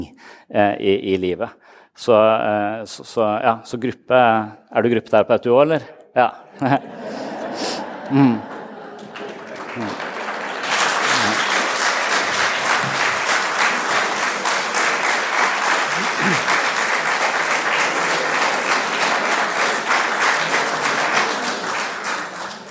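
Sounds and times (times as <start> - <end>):
speech: 0.0 - 7.2, 8.1 - 8.5, 9.8 - 10.0
laughter: 6.6 - 22.6
audience applause: 8.0 - 22.6.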